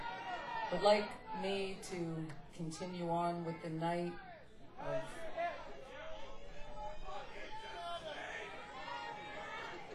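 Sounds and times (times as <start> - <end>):
crowd chatter: 0.0 - 9.9
speech: 0.7 - 5.2.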